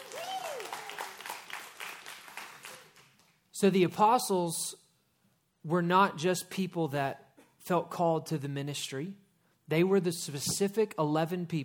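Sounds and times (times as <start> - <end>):
crowd applause: 0.0 - 3.3
speech: 3.6 - 4.8, 5.6 - 11.6.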